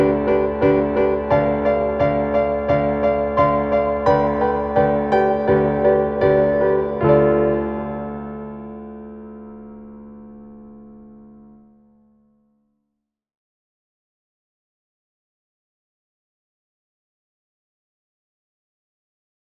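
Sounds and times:
piano piece: 0:00.0 - 0:12.6.

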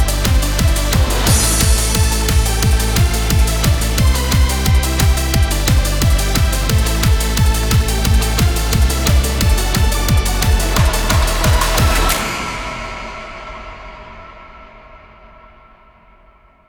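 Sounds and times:
battle music: 0:00.0 - 0:12.8.

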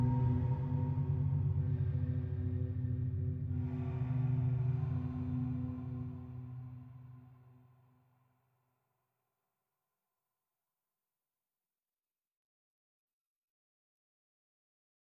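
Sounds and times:
banya ambient music: 0:00.0 - 0:07.2.

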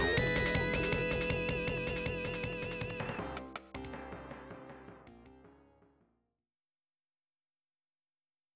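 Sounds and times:
FM synth end sequence music: 0:00.0 - 0:06.0.

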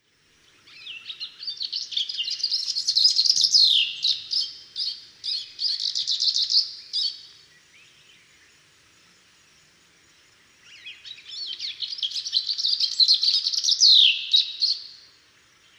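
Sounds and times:
cape bird: 0:00.6 - 0:07.4, 0:10.7 - 0:15.0.

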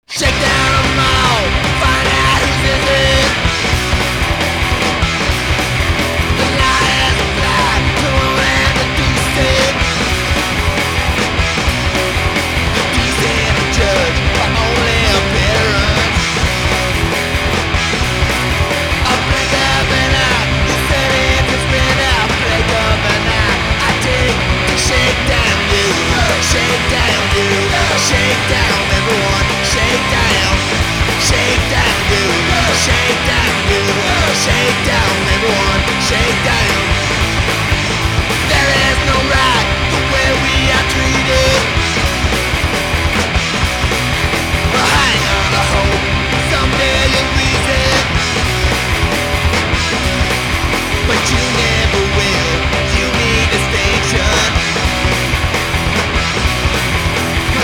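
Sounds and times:
rock music: 0:00.0 - 0:57.6.

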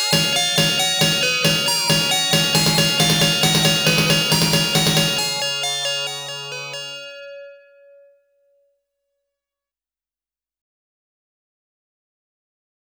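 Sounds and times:
mission accomplished victory jingle: 0:00.1 - 0:07.0.

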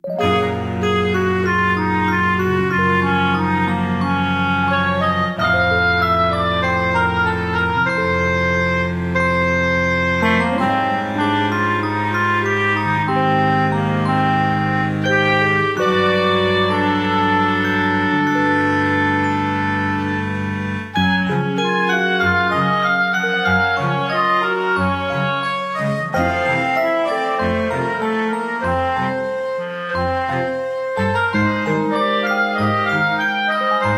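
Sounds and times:
melancholic music loop: 0:00.0 - 0:33.9.

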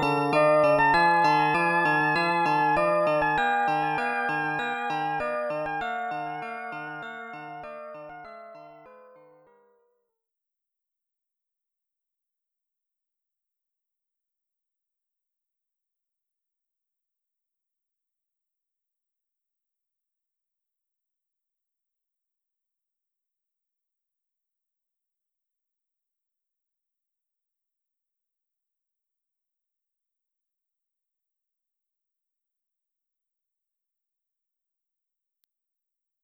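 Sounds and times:
FM synth main menu music: 0:00.0 - 0:08.7.

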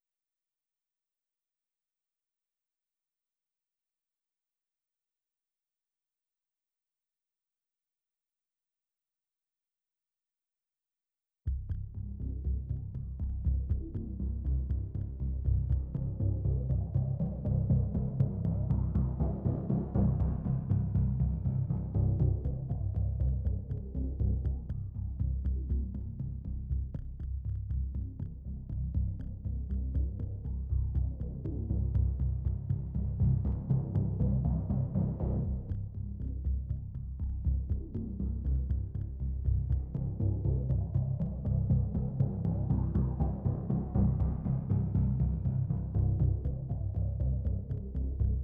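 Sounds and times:
double basses: 0:11.5 - 0:48.4.

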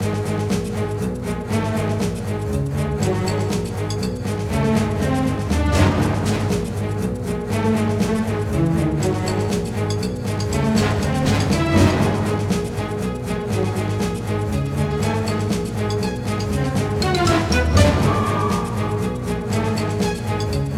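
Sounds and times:
boss combat game music: 0:00.0 - 0:20.7.

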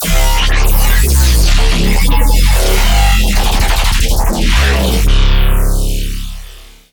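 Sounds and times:
bass note C sharp: 0:00.0 - 0:06.9.

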